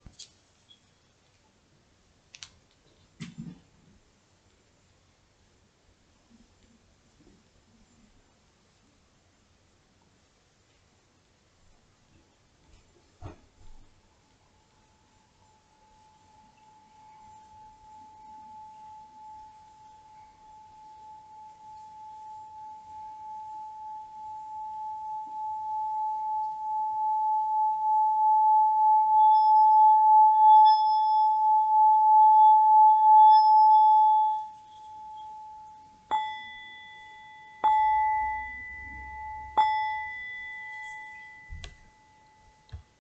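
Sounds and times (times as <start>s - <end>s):
singing bowl: 14.8s - 42.9s.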